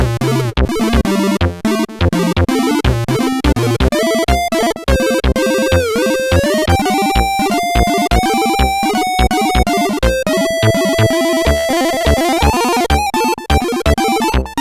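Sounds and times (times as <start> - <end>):
blues music: 0.2 - 14.5.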